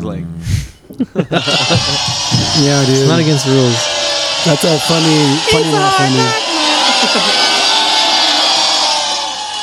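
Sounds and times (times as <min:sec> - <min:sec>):
speech: 0:00.0 - 0:06.4, 0:07.1 - 0:07.4
laughter: 0:00.4 - 0:09.6
looped crowd booing sound effect: 0:00.9 - 0:09.6.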